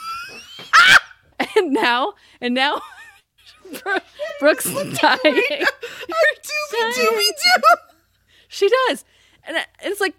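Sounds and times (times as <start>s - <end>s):
speech: 1.6s - 3.0s, 3.7s - 7.9s, 8.5s - 10.1s
voice imitating a sneeze with sung ending: 4.6s - 5.2s.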